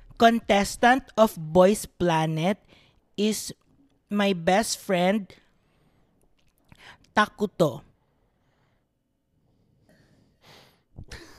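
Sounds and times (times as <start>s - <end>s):
speech: 0.2s - 5.4s, 6.8s - 7.9s
breathing into a microphone: 2.7s - 3.1s, 5.5s - 7.1s, 8.2s - 10.9s.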